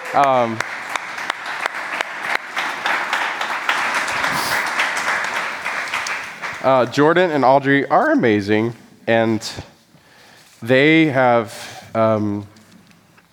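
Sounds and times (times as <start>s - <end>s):
audience applause: 0.0s - 7.2s
speech: 0.2s - 0.7s, 6.6s - 9.7s, 10.6s - 12.5s.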